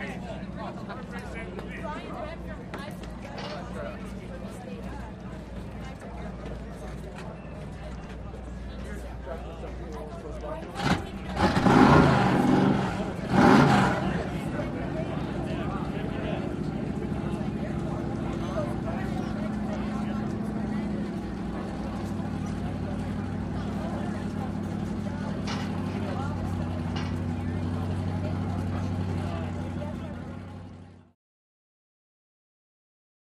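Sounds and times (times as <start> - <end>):
offshore power boat engines in the pit: 0.0 - 31.1.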